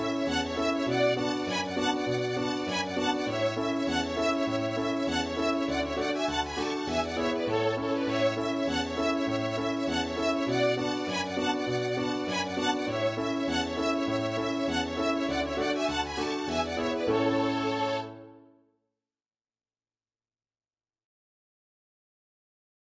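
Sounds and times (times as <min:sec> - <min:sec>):
folk tune played in a high register: 0:00.0 - 0:18.5.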